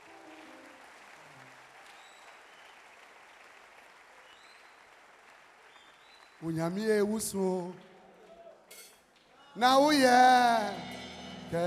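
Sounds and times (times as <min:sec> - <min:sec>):
audience clapping hands: 0:00.0 - 0:09.3
speech: 0:06.4 - 0:07.9, 0:09.6 - 0:11.6.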